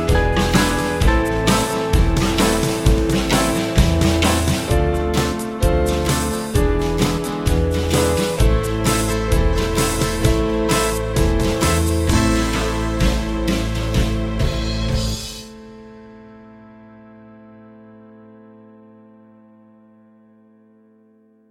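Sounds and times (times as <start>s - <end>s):
band music: 0.0s - 15.9s.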